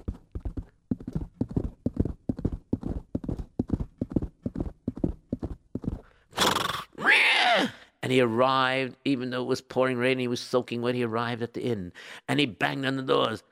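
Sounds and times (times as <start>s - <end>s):
horse galloping hoofbeats: 0.0s - 6.7s
horse whinnying shrilly: 6.3s - 7.8s
speech: 7.1s - 13.5s.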